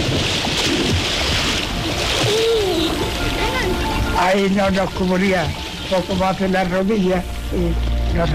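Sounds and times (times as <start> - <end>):
water splashing at a river bathing spot: 0.0 - 8.3
speech: 4.2 - 8.3.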